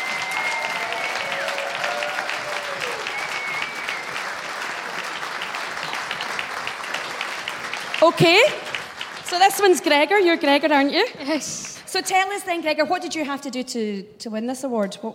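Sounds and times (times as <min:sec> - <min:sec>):
faint cheers and whistles: 0:00.0 - 0:05.2
audience round of applause: 0:00.0 - 0:10.4
speech: 0:08.0 - 0:08.6, 0:09.3 - 0:15.1.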